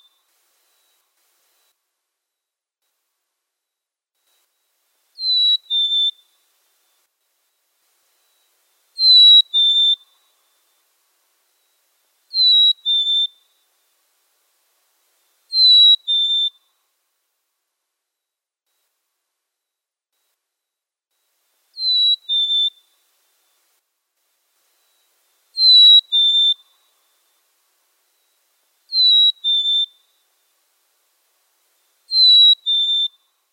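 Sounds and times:
black-capped chickadee chirping: 5.2s - 6.2s, 9.0s - 10.0s, 12.4s - 13.3s, 15.6s - 16.5s, 21.8s - 22.8s, 25.6s - 26.7s, 28.9s - 30.0s, 32.1s - 33.2s.

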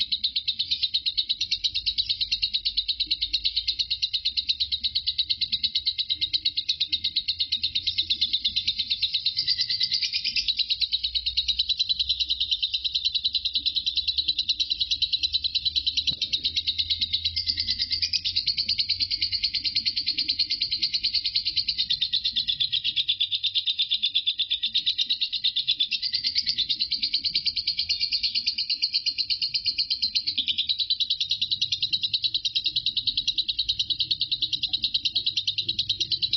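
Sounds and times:
lovebird chattering: 0.0s - 36.3s.

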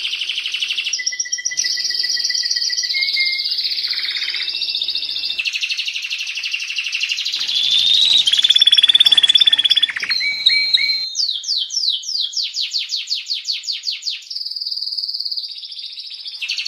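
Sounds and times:
canary singing trills and rolls: 0.0s - 5.4s, 7.4s - 12.3s.

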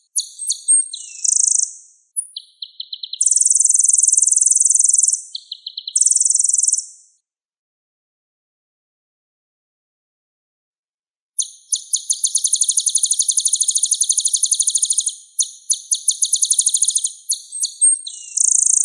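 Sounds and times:
sunbird song: 0.0s - 7.2s, 11.4s - 18.8s.

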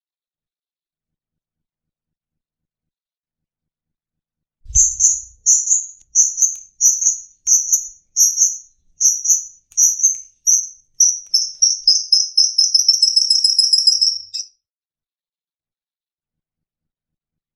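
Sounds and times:
long-tailed shrike trilling: 4.7s - 14.5s.

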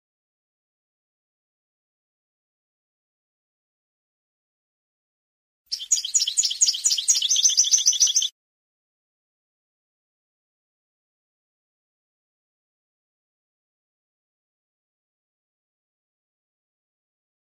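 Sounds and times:
European goldfinch song: 5.7s - 8.3s.

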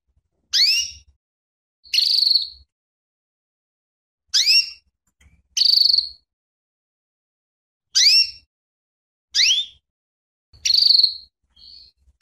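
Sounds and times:
female canary calling with sharp sweeping chirps and buzzy notes: 0.5s - 1.1s, 1.8s - 2.7s, 4.3s - 4.9s, 5.5s - 6.3s, 8.0s - 8.5s, 9.4s - 9.8s, 10.6s - 12.1s.

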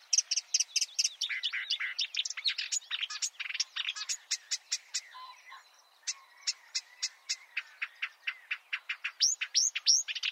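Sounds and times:
marsh warbler singing: 0.0s - 10.2s.

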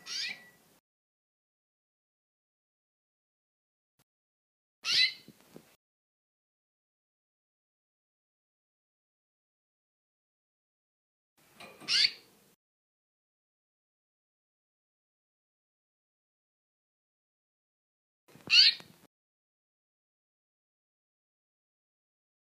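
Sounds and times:
female canary singing: 0.0s - 0.8s, 4.8s - 5.4s, 11.6s - 12.4s, 18.4s - 19.0s.

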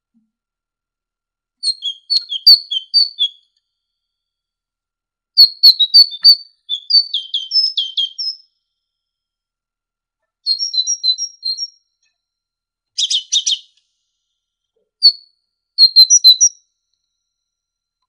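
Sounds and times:
great tit song: 1.6s - 3.4s, 5.4s - 8.5s, 10.5s - 11.7s, 13.0s - 13.8s, 15.0s - 16.6s.

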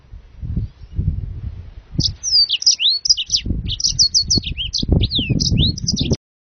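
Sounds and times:
low rumbling noise: 0.0s - 2.4s, 3.3s - 6.2s
Yellow-fronted canary singing: 2.0s - 6.2s.

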